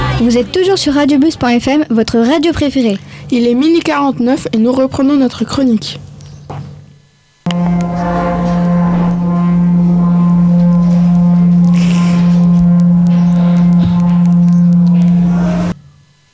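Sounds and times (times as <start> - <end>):
speech: 0.2 - 6.7, 7.5 - 8.7
water singing bowl rubbed by wet hands humming: 7.5 - 16.3.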